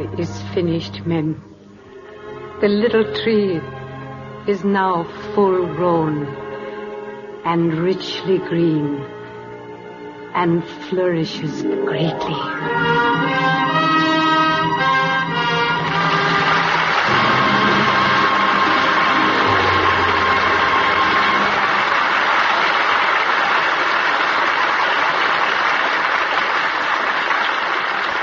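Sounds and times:
held orchestral chord: 0.0 - 4.3, 9.3 - 22.2
speech: 0.2 - 1.5, 2.6 - 3.8, 4.4 - 6.4, 7.4 - 9.1, 10.4 - 13.8
audience applause: 15.8 - 28.2.

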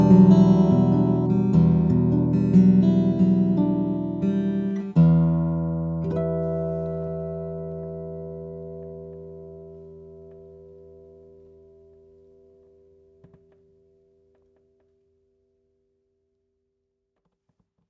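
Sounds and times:
V-OM1000NSX steel string guitar: 0.0 - 13.5.

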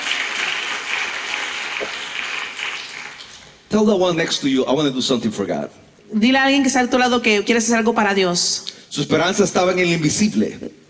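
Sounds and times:
audience applause: 0.0 - 3.4
speech: 3.7 - 10.8.

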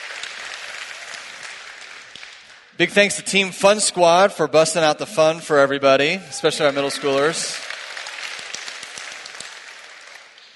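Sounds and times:
audience clapping: 0.0 - 2.8, 6.5 - 10.5
speech: 2.8 - 7.7.

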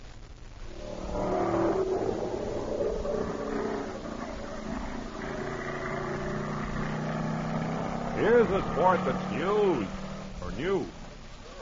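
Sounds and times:
stock car racing engines revving: 0.8 - 11.6
speech: 8.2 - 10.0, 10.6 - 11.0.

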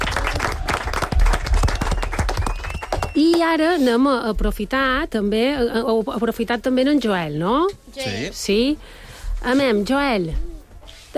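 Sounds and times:
applause: 0.0 - 3.5
speech: 3.2 - 10.5.

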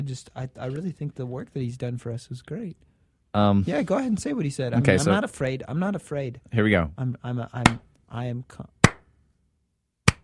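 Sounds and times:
speech: 0.0 - 8.8
hand clapping: 7.6 - 7.8, 8.8 - 9.1, 10.1 - 10.2.

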